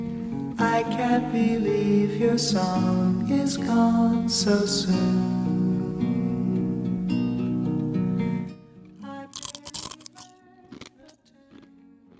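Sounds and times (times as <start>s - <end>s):
music: 0.0s - 12.1s
speech: 0.7s - 5.6s
crunchy chomping of a snack into the microphone: 9.3s - 12.1s.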